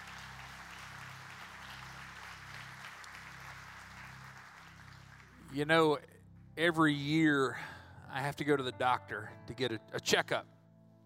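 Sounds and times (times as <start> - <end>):
audience clapping: 0.0 - 5.7
speech: 5.5 - 10.5.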